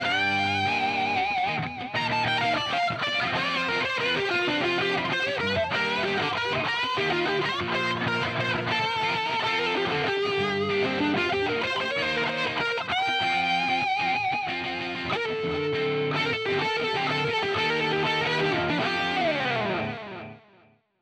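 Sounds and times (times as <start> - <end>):
electric guitar: 0.0 - 20.8.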